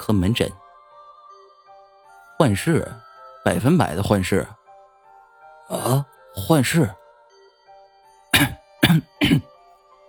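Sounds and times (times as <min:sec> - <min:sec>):
speech: 0:00.1 - 0:00.6, 0:02.4 - 0:04.6, 0:05.7 - 0:07.0, 0:08.4 - 0:09.5
doctor clearing throat: 0:05.7 - 0:06.0, 0:08.4 - 0:09.5
doctor coughing lightly: 0:08.4 - 0:09.5.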